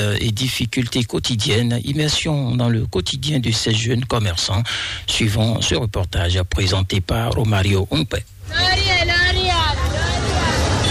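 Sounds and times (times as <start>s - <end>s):
speech: 0.0s - 8.8s
roadside traffic rumble of motorbikes and buses: 0.0s - 10.8s
crowd babble of passers-by: 8.5s - 10.8s.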